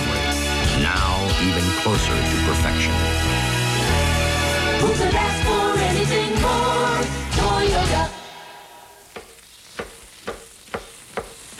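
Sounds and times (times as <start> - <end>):
short burst of music: 0.0 - 9.0
speech: 0.9 - 4.2, 4.8 - 8.1
chef sautéing shrimp in a pan for seafood pasta: 8.2 - 11.5.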